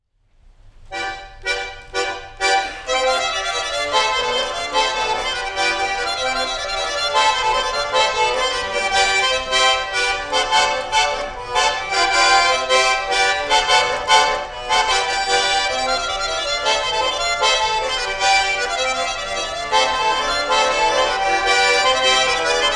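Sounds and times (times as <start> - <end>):
folk dance tune from Bolshoy Kutunal village, Skopin district, Ryazan region: 0.8 - 22.7
laughter: 2.6 - 16.8, 19.9 - 22.7.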